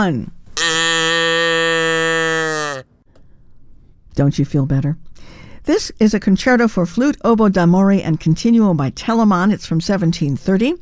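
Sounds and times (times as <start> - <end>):
speech: 0.0 - 0.4, 4.2 - 10.8
cow mooing: 0.6 - 2.8.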